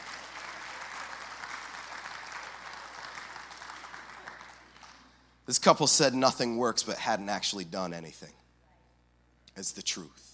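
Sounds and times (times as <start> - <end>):
audience applauding: 0.0 - 5.2
speech: 5.5 - 8.4, 9.6 - 10.3.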